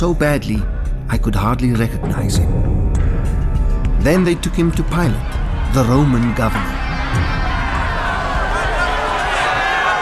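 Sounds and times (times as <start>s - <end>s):
speech: 0.0s - 3.0s, 4.0s - 7.4s
angry crowd babble in a dramatized biblical scene: 5.3s - 10.0s.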